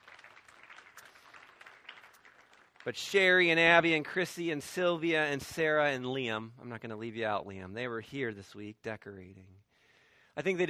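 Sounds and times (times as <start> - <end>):
group of people clapping: 0.0 - 3.8
speech: 2.8 - 9.6, 10.4 - 10.6.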